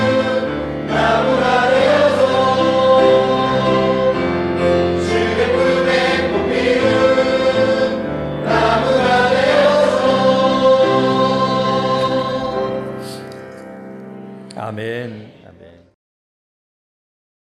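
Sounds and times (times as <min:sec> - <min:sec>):
choir singing: 0:00.0 - 0:13.2.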